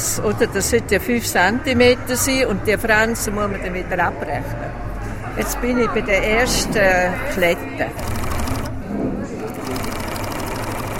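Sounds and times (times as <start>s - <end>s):
speech: 0.2s - 8.2s
sewing machine stitching cloth squares into a picnic blanket: 7.9s - 8.8s, 9.4s - 10.9s.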